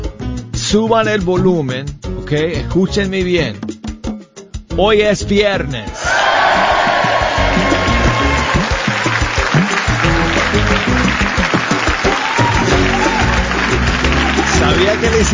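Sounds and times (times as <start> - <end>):
speech: 0.7 - 3.6, 4.8 - 6.2
studio audience applause: 6.0 - 15.3.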